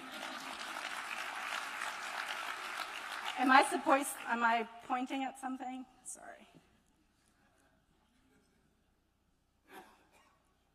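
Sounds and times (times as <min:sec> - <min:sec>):
audience applause: 0:00.0 - 0:04.4
speech: 0:03.4 - 0:06.6.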